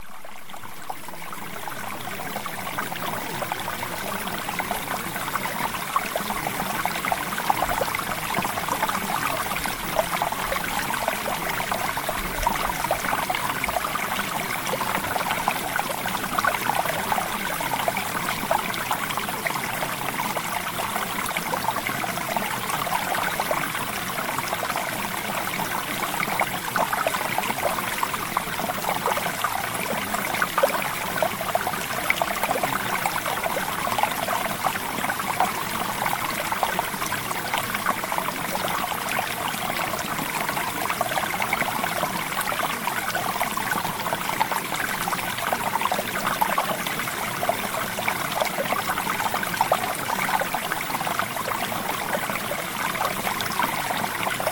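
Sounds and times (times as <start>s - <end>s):
water: 0.0s - 54.5s.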